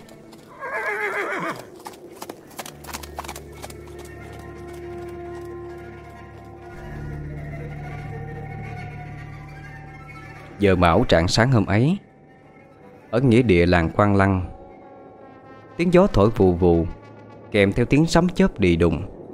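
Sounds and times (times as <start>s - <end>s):
galloping hooves: 0.0s - 9.4s
horse neighing: 0.5s - 1.8s
speech: 10.6s - 12.1s, 13.1s - 14.5s, 15.8s - 19.1s.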